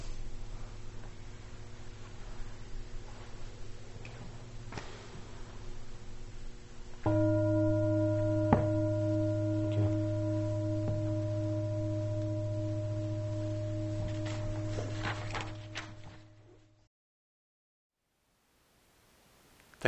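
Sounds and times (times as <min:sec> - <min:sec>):
bell ringing: 0:07.1 - 0:16.3.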